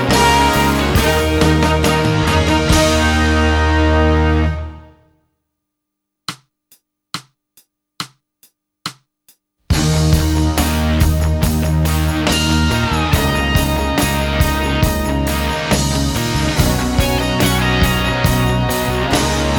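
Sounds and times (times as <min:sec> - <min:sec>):
sixteenth variations music: 0:00.0 - 0:05.0, 0:09.7 - 0:19.5.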